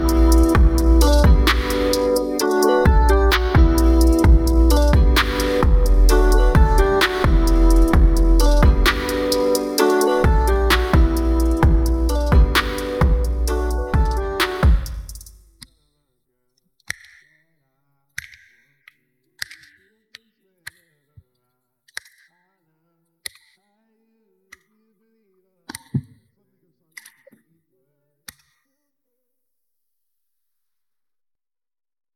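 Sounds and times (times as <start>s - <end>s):
instrumental music: 0.0s - 15.3s.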